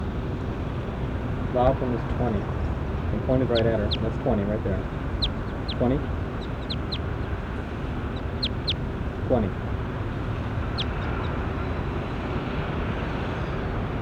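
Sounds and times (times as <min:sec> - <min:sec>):
steady rushing noise: 0:00.1 - 0:14.0
speech: 0:01.6 - 0:05.1, 0:05.8 - 0:06.2, 0:09.3 - 0:09.7
short high-pitched bird chirps: 0:03.4 - 0:09.6, 0:10.4 - 0:11.4.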